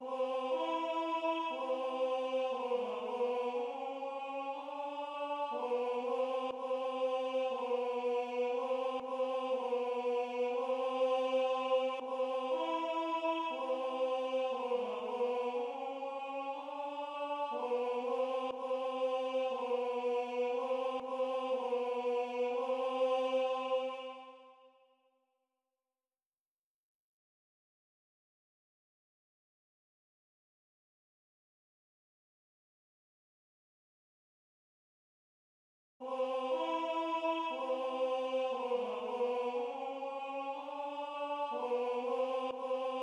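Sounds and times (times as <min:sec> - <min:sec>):
tenor singing: 0:00.0 - 0:24.4, 0:36.0 - 0:43.0.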